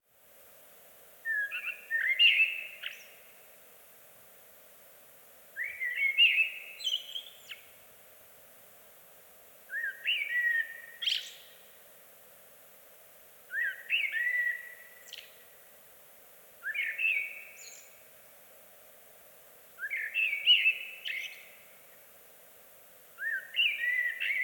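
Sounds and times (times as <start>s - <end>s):
Eurasian blackbird mellow whistled song phrases: 1.2s - 3.3s, 5.6s - 7.8s, 9.7s - 11.7s, 13.5s - 15.5s, 16.6s - 18.0s, 19.8s - 21.7s, 23.2s - 24.4s.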